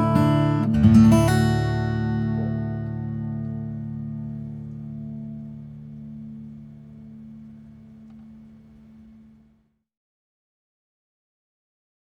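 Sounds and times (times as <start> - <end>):
guitar: 0.0 - 9.6.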